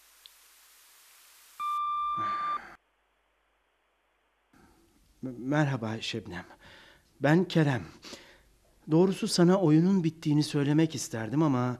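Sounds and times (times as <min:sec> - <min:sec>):
answering machine beep: 0:01.6 - 0:02.8
speech: 0:05.2 - 0:08.2, 0:08.9 - 0:11.7.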